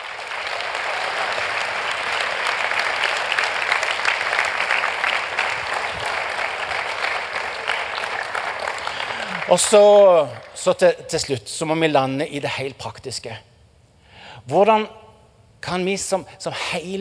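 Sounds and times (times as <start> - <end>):
large crowd applauding: 0.0 - 10.8
speech: 9.5 - 13.5, 14.4 - 15.0, 15.6 - 17.0.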